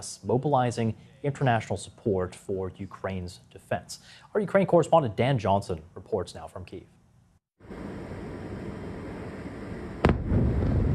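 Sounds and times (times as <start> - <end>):
speech: 0.0 - 7.0
blast from a night-time ballistic missile attack on Kyiv: 7.7 - 10.9.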